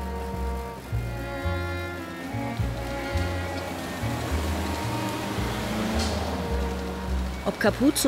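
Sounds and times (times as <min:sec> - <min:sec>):
busy main street ambience on Allenby Street in Tel Aviv: 0:00.0 - 0:08.0
speech: 0:07.5 - 0:08.0.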